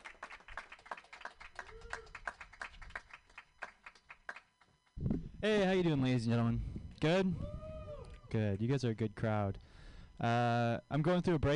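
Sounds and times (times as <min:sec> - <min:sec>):
audience clapping: 0:00.0 - 0:04.7
speech: 0:05.4 - 0:07.6, 0:08.3 - 0:09.6, 0:10.2 - 0:11.5.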